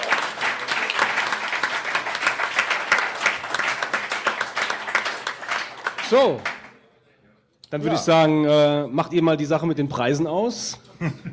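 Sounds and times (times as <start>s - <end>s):
applause from many hands: 0.0s - 6.8s
speech: 6.1s - 6.5s, 7.7s - 11.3s
laughter: 10.9s - 11.3s.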